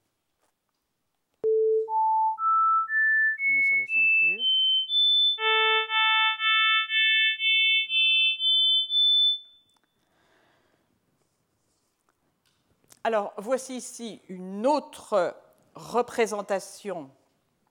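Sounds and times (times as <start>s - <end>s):
harmonic tones losing lowest harmonics: 1.9s - 9.3s
speech: 13.1s - 17.2s.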